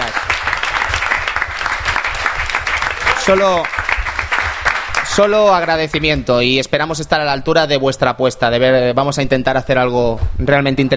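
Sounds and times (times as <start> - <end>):
applause: 0.0 - 6.1
speech: 3.2 - 3.8, 5.2 - 10.9.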